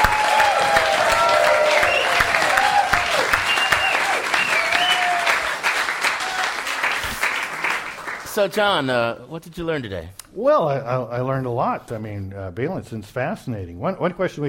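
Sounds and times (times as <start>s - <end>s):
live audience applause: 0.0s - 8.6s
speech: 8.4s - 14.4s.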